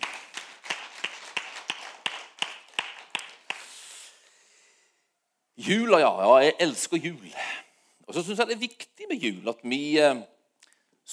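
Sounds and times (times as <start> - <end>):
audience clapping: 0.0 - 3.8
speech: 5.6 - 10.3.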